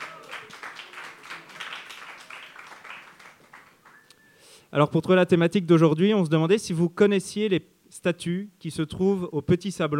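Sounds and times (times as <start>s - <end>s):
crowd applause: 0.0s - 4.0s
speech: 4.7s - 9.9s.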